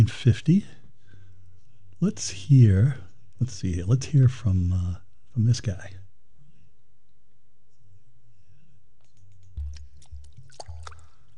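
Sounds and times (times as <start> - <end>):
speech: 0.0 - 0.8, 2.0 - 6.0
water dripping: 9.6 - 11.3.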